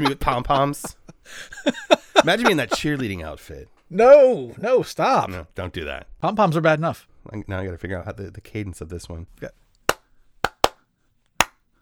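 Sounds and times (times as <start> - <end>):
laughter: 0.0 - 3.1
speech: 0.0 - 9.6
hand clapping: 9.9 - 10.8.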